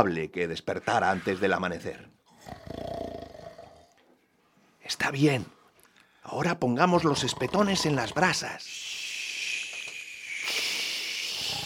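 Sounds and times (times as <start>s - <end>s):
speech: 0.0s - 2.8s, 4.9s - 5.6s, 6.3s - 9.0s
giant snoring: 2.3s - 4.0s, 7.0s - 8.3s, 11.2s - 11.6s.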